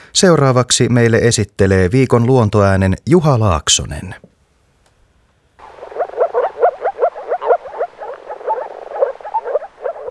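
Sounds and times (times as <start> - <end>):
speech: 0.2 - 4.3
frogs croaking: 5.6 - 10.1.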